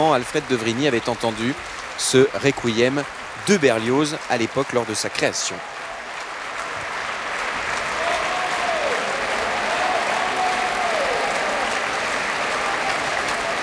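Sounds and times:
speech: 0:00.0 - 0:05.8
concert audience applause: 0:00.0 - 0:13.6.

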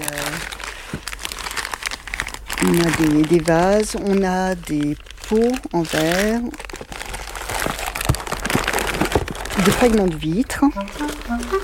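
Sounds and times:
crinkly wrapping rustling as a package of glass fragments is opened: 0:00.0 - 0:11.6
speech: 0:02.6 - 0:06.6, 0:09.6 - 0:11.6.

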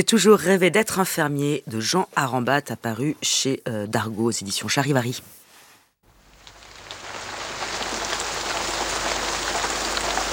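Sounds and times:
speech: 0:00.0 - 0:05.4
rain falling: 0:06.1 - 0:10.3.

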